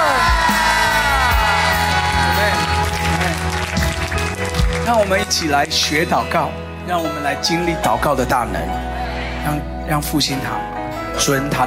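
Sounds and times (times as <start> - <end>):
audience clapping: 0.0 - 5.8
speech: 5.0 - 11.6.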